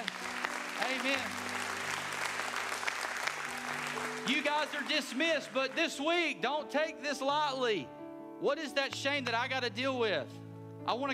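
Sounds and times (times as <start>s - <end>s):
audience applause: 0.0s - 6.2s
speech: 1.0s - 1.6s, 4.2s - 11.1s.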